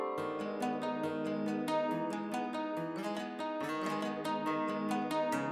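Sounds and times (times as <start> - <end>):
trap beat with guitar: 0.2 - 5.5.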